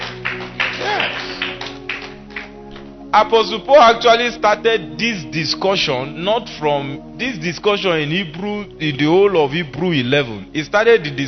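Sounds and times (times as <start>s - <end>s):
audience clapping: 0.0s - 3.0s
speech: 3.1s - 11.2s.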